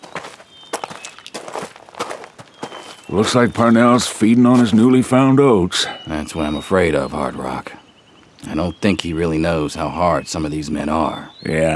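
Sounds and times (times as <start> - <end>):
school teacher's footsteps walking away: 0.0 - 5.1
speech: 3.1 - 7.8, 8.4 - 11.7.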